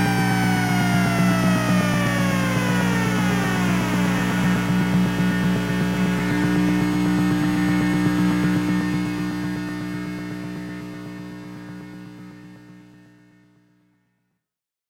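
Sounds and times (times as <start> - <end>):
LM386 amplifier oscillator tone: 0.0 - 11.1.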